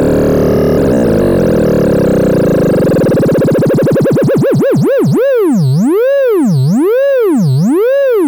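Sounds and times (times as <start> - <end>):
2A03 triangle channel FM test tone: 0.0 - 8.2.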